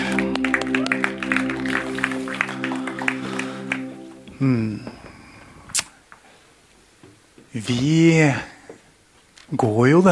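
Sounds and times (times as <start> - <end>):
audience applause: 0.0 - 4.4
speech: 4.4 - 5.0, 7.6 - 8.5, 9.5 - 10.1.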